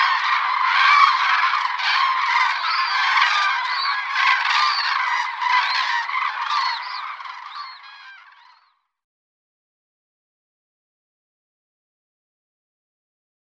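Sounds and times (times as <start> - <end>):
common crane bugling and trumpeting calls: 0.0 - 8.7.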